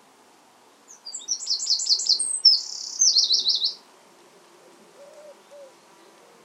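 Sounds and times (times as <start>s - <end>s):
Eurasian wren song: 0.8s - 3.9s, 5.0s - 6.4s.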